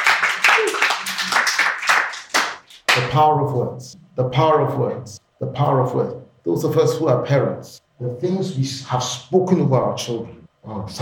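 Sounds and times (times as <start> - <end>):
church congregation rhythmic clapping for a clap offering: 0.0 - 3.2
speech: 3.0 - 11.0.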